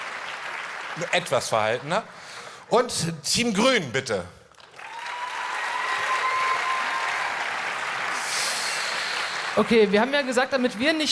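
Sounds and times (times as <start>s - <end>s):
audience applause for a team: 0.0s - 2.6s, 4.6s - 10.4s
speech: 1.0s - 4.4s, 9.6s - 11.1s.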